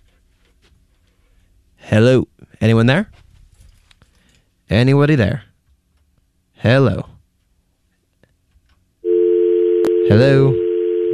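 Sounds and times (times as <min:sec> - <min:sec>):
speech: 0:01.9 - 0:03.2, 0:04.7 - 0:05.5, 0:06.6 - 0:07.1, 0:10.1 - 0:11.1
telephone busy signal after a dropped call: 0:09.0 - 0:11.1.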